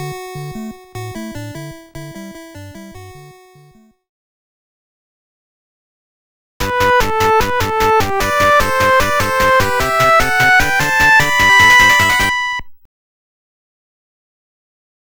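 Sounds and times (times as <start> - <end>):
opening theme music: 6.6 - 12.7.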